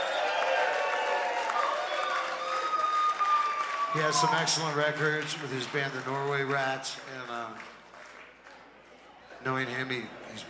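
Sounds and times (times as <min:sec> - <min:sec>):
crowd applauding and cheering: 0:00.0 - 0:09.0
speech: 0:03.9 - 0:07.8, 0:09.4 - 0:10.4.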